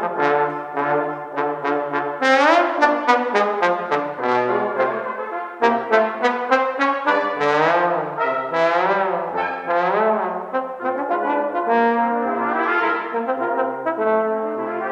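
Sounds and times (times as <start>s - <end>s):
trombone: 0.0s - 14.9s.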